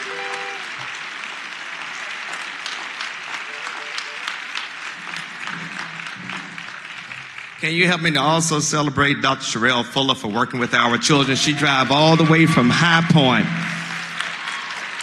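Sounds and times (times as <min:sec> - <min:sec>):
audience applause: 0:00.0 - 0:08.6, 0:11.1 - 0:15.0
speech: 0:07.6 - 0:13.7.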